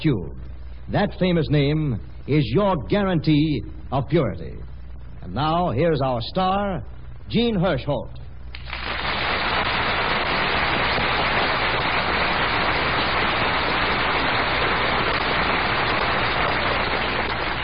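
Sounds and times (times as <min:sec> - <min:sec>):
speech: 0:00.0 - 0:08.2
studio audience applause: 0:08.6 - 0:17.6.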